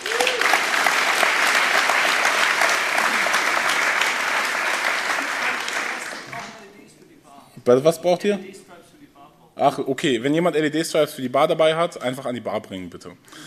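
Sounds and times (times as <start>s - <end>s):
audience applause: 0.0s - 6.6s
speech: 7.7s - 8.6s, 9.6s - 13.4s.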